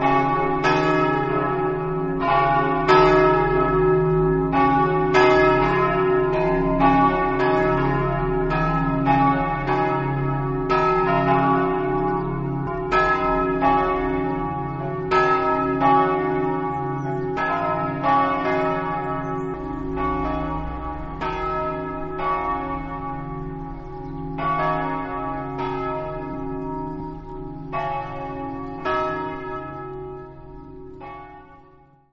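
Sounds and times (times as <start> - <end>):
church bells ringing in Flaibano: 0.0 - 32.1.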